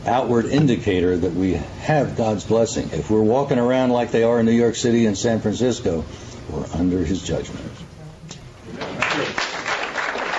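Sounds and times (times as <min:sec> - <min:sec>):
speech: 0:00.0 - 0:07.7
audience clapping: 0:08.7 - 0:10.3.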